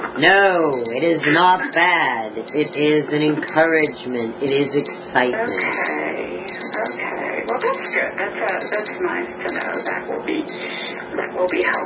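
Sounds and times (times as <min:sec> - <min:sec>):
speech: 0:00.2 - 0:10.7, 0:11.4 - 0:11.8
timer high electronic beeps: 0:00.2 - 0:11.8.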